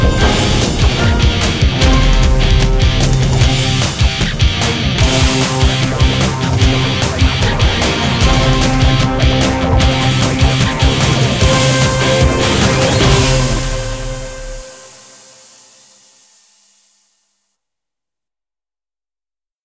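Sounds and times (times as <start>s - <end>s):
fast high action: 0.0s - 15.4s.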